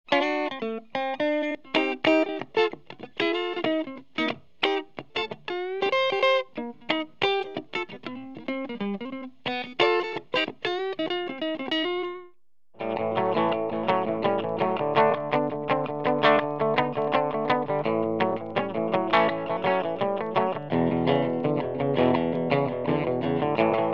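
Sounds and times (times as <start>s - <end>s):
clean Crown D-75 amplified tone: 0.1s - 23.9s.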